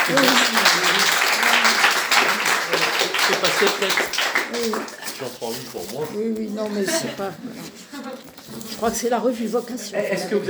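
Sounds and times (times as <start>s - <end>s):
audience applause: 0.0s - 5.3s
laughter: 0.0s - 5.6s, 6.7s - 8.4s
speech: 0.1s - 0.5s, 3.6s - 10.4s.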